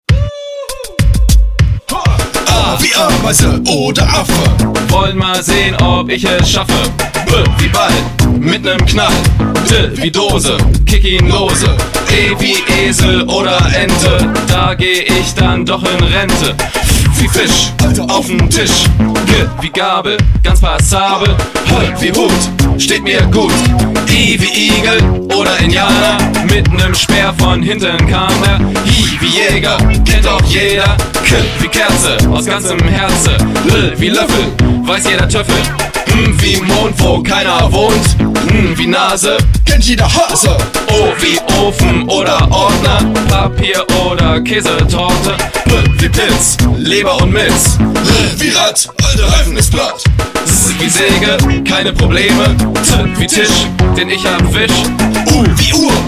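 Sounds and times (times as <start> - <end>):
rapping: 0.1 - 56.0.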